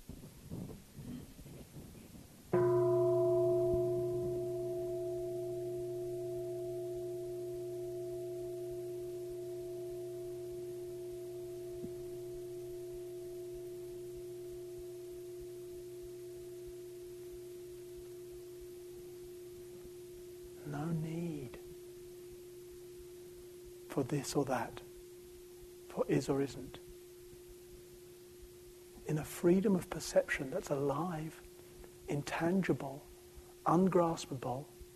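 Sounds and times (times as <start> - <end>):
meditation bell ringing: 2.5 - 29.8
speech: 24.0 - 24.9, 26.0 - 26.8, 29.1 - 31.4, 32.1 - 34.7.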